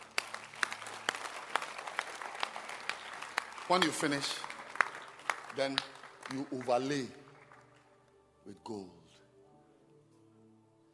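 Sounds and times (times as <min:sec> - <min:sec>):
audience clapping hands: 0:00.0 - 0:07.9
speech: 0:03.7 - 0:04.5, 0:05.6 - 0:07.2, 0:08.5 - 0:09.0.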